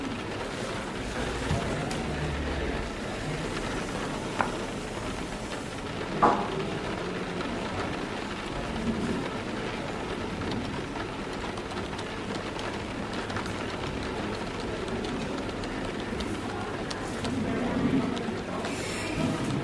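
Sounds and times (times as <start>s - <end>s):
people chattering quietly at their tables: 0.0s - 19.6s
rain pattering on the window: 0.0s - 19.6s.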